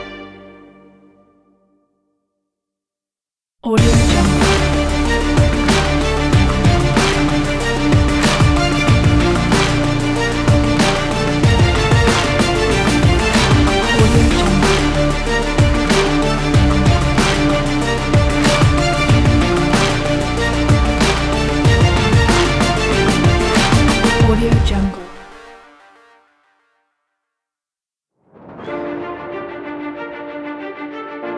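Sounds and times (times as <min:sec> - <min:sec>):
dramatic sports music: 0:03.8 - 0:24.9.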